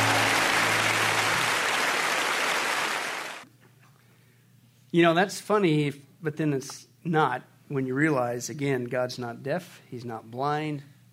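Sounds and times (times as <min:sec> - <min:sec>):
applause: 0:00.0 - 0:03.4
speech: 0:04.9 - 0:10.9.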